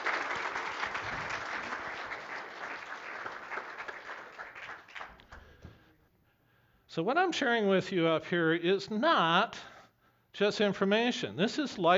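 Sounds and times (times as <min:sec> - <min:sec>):
audience round of applause: 0:00.0 - 0:05.5
speech: 0:06.9 - 0:09.7, 0:10.4 - 0:11.9.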